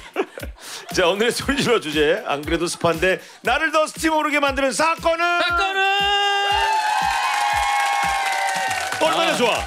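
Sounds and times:
speech: 0:00.9 - 0:06.7, 0:09.0 - 0:09.6
crowd cheering: 0:06.0 - 0:09.6
audience clapping in unison: 0:06.5 - 0:09.6.

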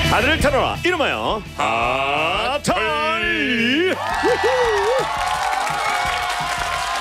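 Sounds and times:
speech: 0:00.1 - 0:05.3
studio audience applause and cheering: 0:03.8 - 0:06.9.

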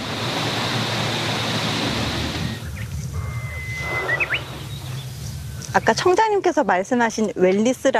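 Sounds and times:
strong wind rustling forest tree leaves: 0:00.0 - 0:07.9
bird chirps: 0:02.5 - 0:06.0
speech: 0:05.8 - 0:07.9.

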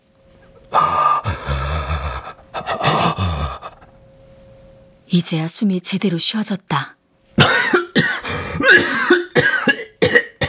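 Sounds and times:
coughing fit: 0:00.6 - 0:03.9, 0:07.4 - 0:10.4
speech: 0:05.2 - 0:07.0.

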